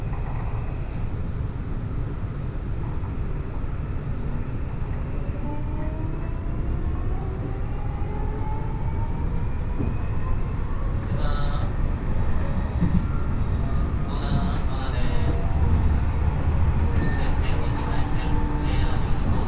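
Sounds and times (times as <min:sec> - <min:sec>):
onboard train rumble through Osaka: 0:00.0 - 0:19.4
faint voices: 0:10.8 - 0:19.4.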